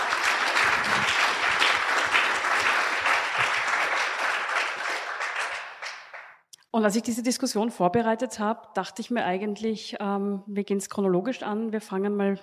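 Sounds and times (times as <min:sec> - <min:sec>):
audience applause: 0:00.0 - 0:06.4
speech: 0:06.8 - 0:12.4.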